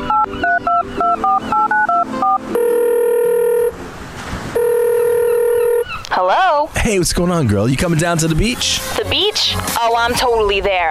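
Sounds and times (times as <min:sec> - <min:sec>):
dual-tone keypad beeps: 0:00.0 - 0:03.7, 0:04.6 - 0:05.8
long electronic ringback tones: 0:00.0 - 0:03.8, 0:04.6 - 0:06.0
speech: 0:06.9 - 0:10.9.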